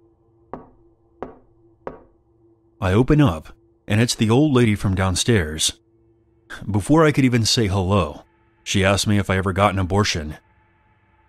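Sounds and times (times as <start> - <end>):
knock at the door: 0.5 - 2.1
speech: 2.8 - 5.8, 6.5 - 10.4.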